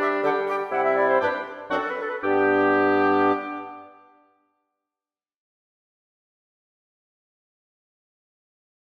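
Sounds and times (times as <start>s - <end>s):
wind quintet playing a minuet: 0.0s - 4.2s.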